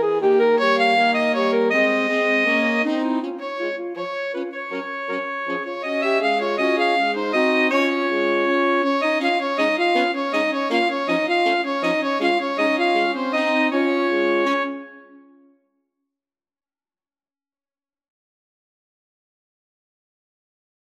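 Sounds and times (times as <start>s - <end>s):
alto saxophone quartet: 0.0s - 15.4s.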